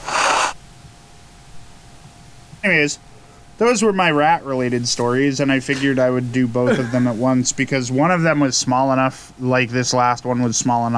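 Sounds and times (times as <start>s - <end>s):
person blowing nose: 0.0s - 0.6s
speech: 2.6s - 10.9s.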